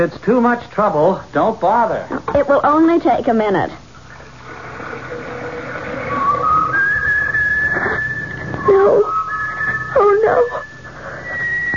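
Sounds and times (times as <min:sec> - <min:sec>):
speech: 0:00.0 - 0:03.8, 0:08.7 - 0:09.1, 0:10.2 - 0:10.7
kettle whistling: 0:04.1 - 0:11.7.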